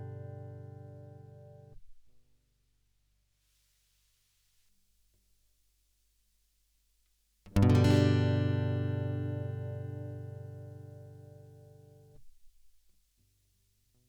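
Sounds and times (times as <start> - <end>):
equalised guitar: 0.0 - 1.8, 7.5 - 12.2.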